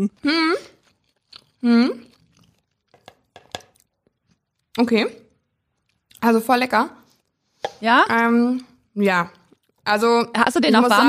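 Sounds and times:
speech: 0:00.0 - 0:00.7, 0:01.6 - 0:02.2, 0:04.8 - 0:05.2, 0:06.2 - 0:07.0, 0:07.8 - 0:11.0
crunchy chewing as a person eats a cold meal during a WhatsApp video call: 0:00.6 - 0:04.8, 0:05.4 - 0:06.2, 0:09.3 - 0:09.9.

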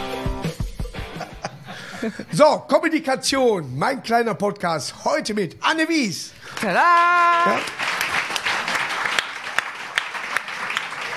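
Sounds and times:
laughter: 0:01.0 - 0:02.4
speech: 0:02.0 - 0:07.8
hand clapping: 0:06.5 - 0:11.1.

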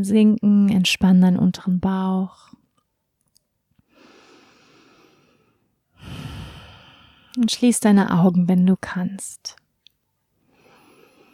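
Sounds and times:
speech: 0:00.0 - 0:02.6, 0:07.4 - 0:09.6
deep breath released through an open mouth during a relaxation exercise: 0:03.9 - 0:07.4, 0:10.5 - 0:11.3.

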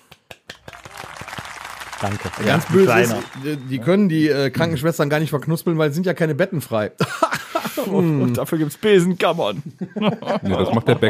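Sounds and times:
applause sound effect: 0:00.0 - 0:04.3
laughter: 0:00.4 - 0:01.2, 0:07.0 - 0:08.7, 0:09.5 - 0:11.0
speech: 0:02.0 - 0:07.2, 0:07.8 - 0:11.0.

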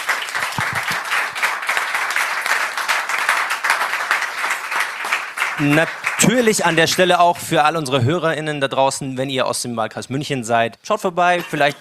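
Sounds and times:
audience applause: 0:00.0 - 0:06.9
speech: 0:05.6 - 0:11.7.

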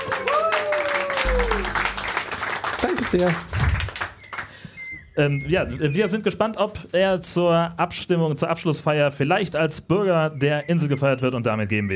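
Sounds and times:
applause: 0:00.0 - 0:04.6
speech: 0:02.8 - 0:03.6, 0:05.2 - 0:11.9.

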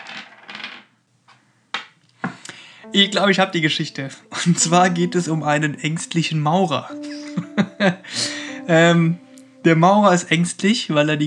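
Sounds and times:
small dice shaken and tumbling onto a hard surface: 0:00.0 - 0:00.9
speech: 0:02.9 - 0:11.2.

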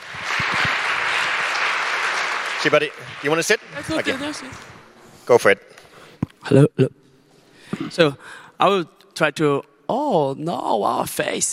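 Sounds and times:
audience applause: 0:00.0 - 0:05.0
speech: 0:02.6 - 0:05.8, 0:06.4 - 0:07.0, 0:07.8 - 0:11.5.

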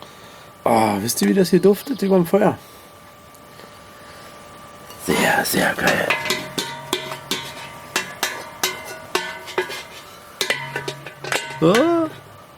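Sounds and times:
speech: 0:00.7 - 0:02.8, 0:05.4 - 0:06.1, 0:11.6 - 0:11.9
voiced exclamation: 0:05.0 - 0:06.2
metal pot lid clattering: 0:05.7 - 0:12.4.

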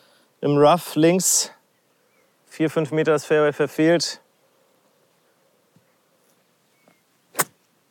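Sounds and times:
speech: 0:00.4 - 0:01.6, 0:02.6 - 0:04.2
golf practice swing with a seven iron from the rough: 0:07.3 - 0:07.6.

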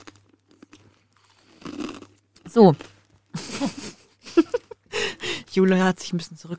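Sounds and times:
person chewing crunchy snack: 0:00.0 - 0:03.4
speech: 0:02.5 - 0:02.9, 0:05.6 - 0:06.5
laughter: 0:03.4 - 0:05.4.

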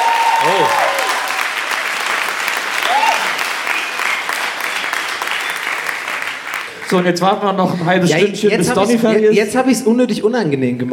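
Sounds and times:
audience applause: 0:00.0 - 0:07.4
speech: 0:06.9 - 0:10.9.

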